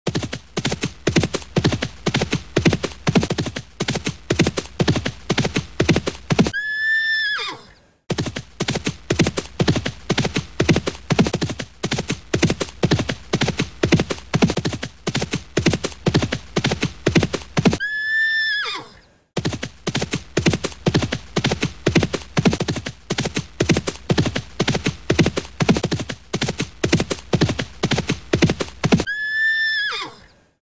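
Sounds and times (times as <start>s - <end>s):
horse: 0.1s - 30.4s.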